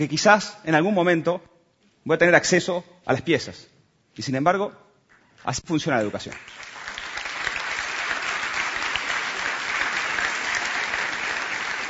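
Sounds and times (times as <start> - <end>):
speech: 0.0 - 4.8, 5.4 - 6.7
audience applause: 6.3 - 11.8.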